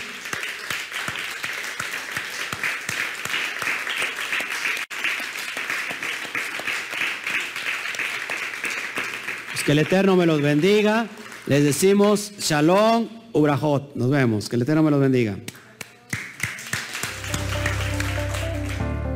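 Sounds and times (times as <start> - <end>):
audience applause: 0.0 - 12.0, 16.2 - 19.0
speech: 9.7 - 15.5.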